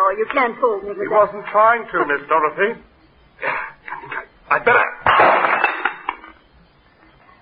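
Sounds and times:
speech: 0.2s - 2.9s, 4.5s - 5.0s
bottle smashed over someone's head: 5.0s - 6.1s.

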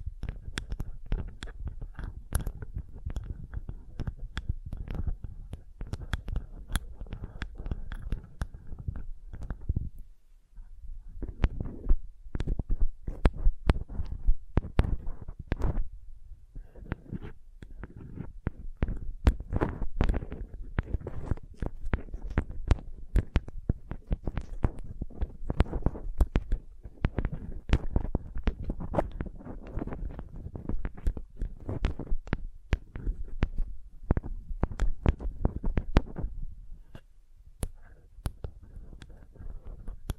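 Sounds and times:
soft rapid tapping: 0.0s - 15.9s, 16.6s - 40.1s.

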